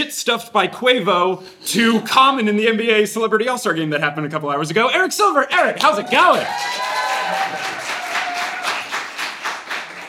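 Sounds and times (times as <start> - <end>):
speech: 0.0 - 7.8
steady crowd applause: 5.9 - 10.0.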